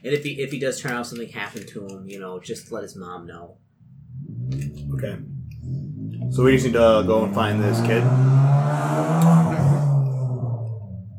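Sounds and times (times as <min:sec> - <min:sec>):
speech: 0:00.0 - 0:03.7, 0:04.5 - 0:09.3
motorcycle speeding by: 0:03.8 - 0:11.1.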